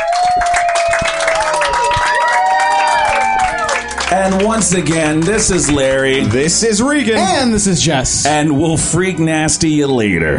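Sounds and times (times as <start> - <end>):
high whoops and shouts: 0.0 - 3.8
comedy club audience cheering and applauding: 0.0 - 7.7
speech: 4.3 - 10.3.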